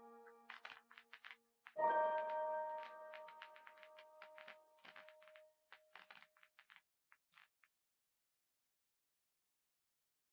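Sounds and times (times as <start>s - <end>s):
instrumental music: 1.8s - 5.4s.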